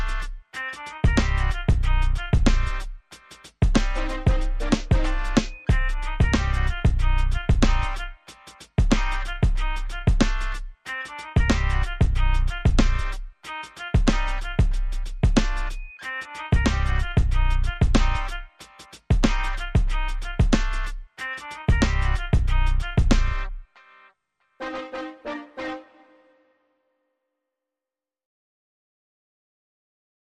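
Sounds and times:
hard urban music: 0.0s - 23.7s.

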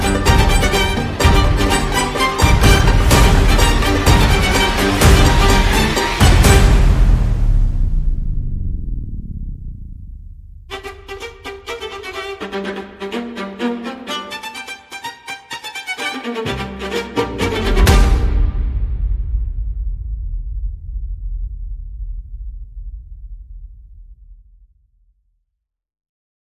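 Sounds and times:
percussion: 0.0s - 8.4s, 16.1s - 21.9s.

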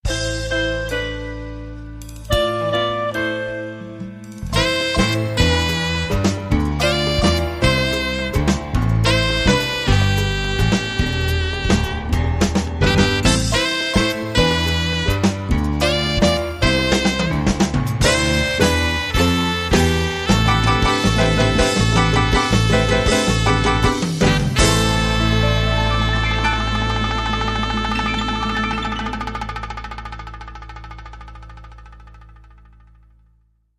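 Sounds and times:
Latin music: 0.0s - 33.2s.

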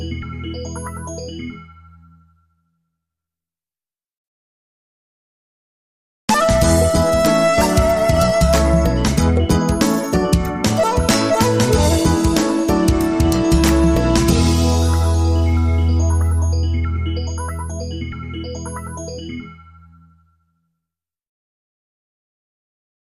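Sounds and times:
jazz tech music: 6.3s - 19.6s.

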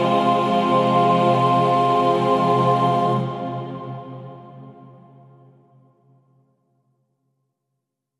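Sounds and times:
choir stem: 0.0s - 5.4s.

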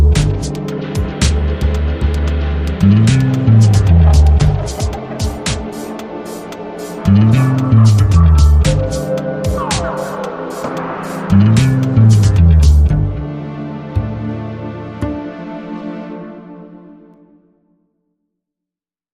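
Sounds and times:
bass: 0.0s - 4.9s, 7.1s - 9.2s, 11.3s - 15.3s.

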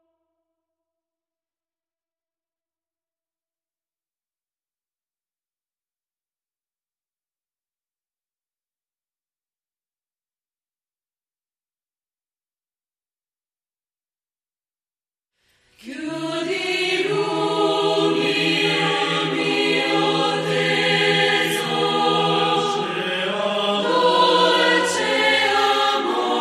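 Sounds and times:
choir singing: 15.8s - 26.4s.

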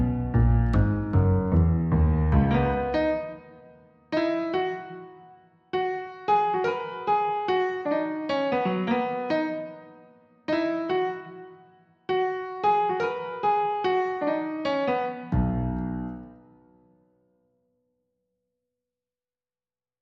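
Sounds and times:
double bass: 0.0s - 3.0s
piano: 0.0s - 17.4s.

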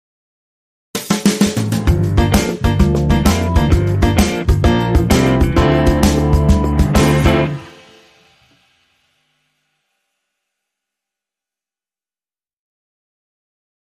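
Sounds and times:
swing shuffle rhythm: 1.0s - 7.9s.

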